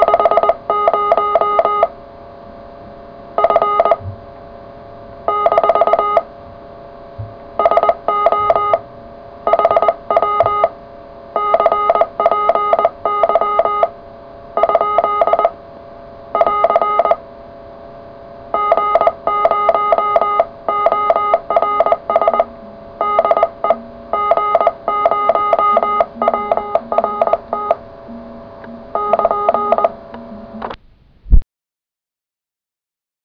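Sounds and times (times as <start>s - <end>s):
CW Morse code radio contact: 0.0s - 2.0s, 3.4s - 4.1s, 5.3s - 6.3s, 7.6s - 8.8s, 9.4s - 10.8s, 11.4s - 14.0s, 14.6s - 15.6s, 16.3s - 17.2s, 18.5s - 30.8s.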